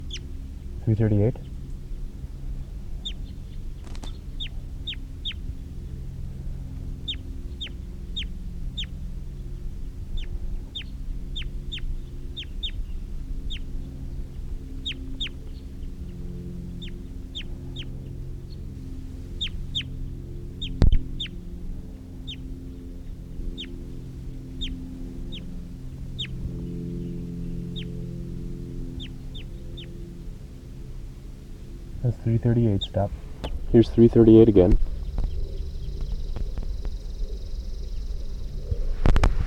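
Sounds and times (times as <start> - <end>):
speech: 0.9 - 1.5, 32.5 - 34.8
captive decoy bird calling: 3.0 - 5.6, 7.0 - 9.0, 10.2 - 16.1, 20.6 - 21.4, 22.2 - 28.0, 28.9 - 30.0, 32.0 - 39.3.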